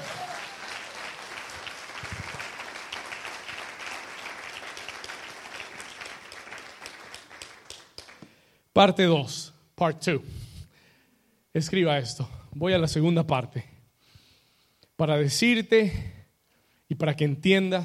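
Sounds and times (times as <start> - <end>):
audience applauding loudly: 0.0 - 8.4
speech: 8.8 - 10.4, 11.6 - 13.7, 15.0 - 16.2, 16.9 - 17.8.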